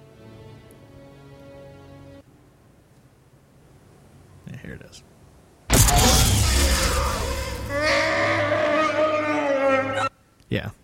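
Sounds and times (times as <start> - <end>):
speech: 4.7 - 5.3
tortured creature roar: 5.7 - 10.1.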